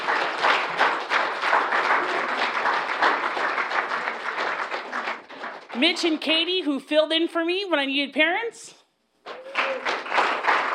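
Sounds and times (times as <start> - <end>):
audience applause: 0.0 - 5.8, 9.3 - 10.7
speech: 5.8 - 8.8.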